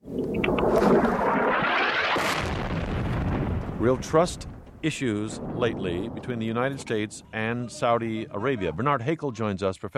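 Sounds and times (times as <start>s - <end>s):
explosions from airstrikes: 0.4s - 7.8s
speech: 3.8s - 9.9s.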